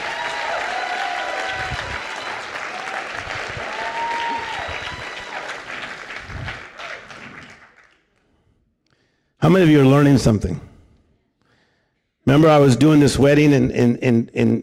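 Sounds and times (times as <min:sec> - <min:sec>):
audience clapping hands: 0:00.0 - 0:08.4
speech: 0:09.5 - 0:10.7, 0:12.3 - 0:14.6.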